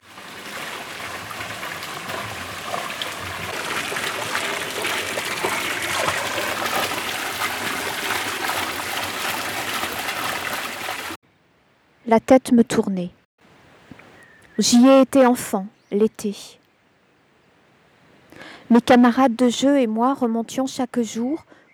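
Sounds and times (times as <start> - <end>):
outdoor fountain of the thermal baths running: 0.0 - 11.2
speech: 12.1 - 13.2, 14.6 - 16.6, 18.7 - 21.6.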